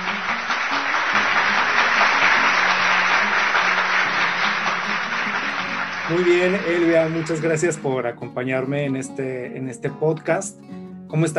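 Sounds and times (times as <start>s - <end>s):
applause: 0.0s - 8.0s
speech: 6.1s - 11.3s.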